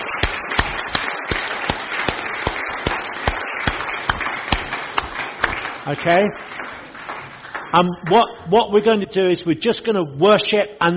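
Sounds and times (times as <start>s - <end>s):
audience applause: 0.0s - 7.7s
speech: 5.8s - 6.6s, 7.7s - 10.9s.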